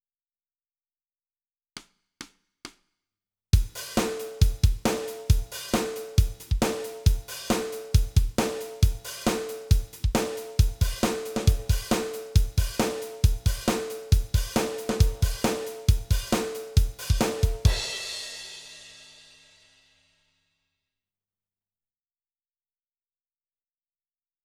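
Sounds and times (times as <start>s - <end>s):
drums: 3.6s - 19.9s.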